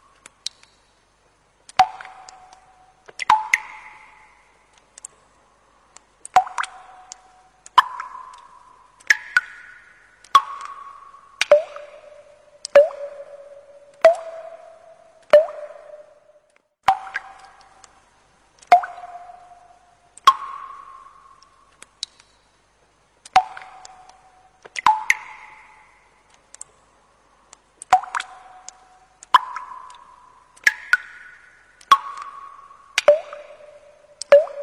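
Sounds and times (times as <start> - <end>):
water drops falling onto a stone ledge: 1.7 - 4.3, 6.2 - 16.2, 18.6 - 19.6, 20.2 - 22.3, 23.3 - 25.8, 27.8 - 30.0, 30.6 - 34.6.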